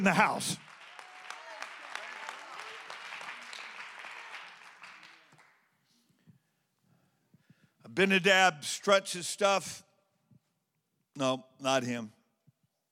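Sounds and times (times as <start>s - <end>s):
speech: 0.0s - 0.6s, 7.9s - 9.8s, 11.2s - 12.2s
audience clapping: 0.0s - 6.0s.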